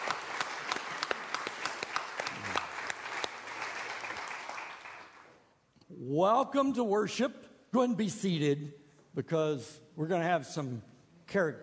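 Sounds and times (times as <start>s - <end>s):
audience applause: 0.0s - 5.4s
speech: 6.1s - 11.6s.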